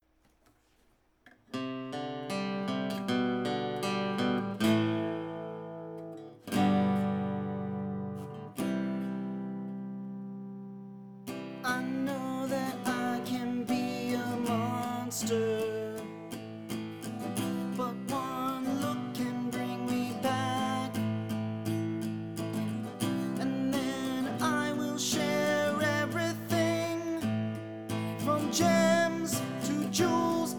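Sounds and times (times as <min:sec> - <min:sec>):
acoustic music: 0:01.3 - 0:30.5.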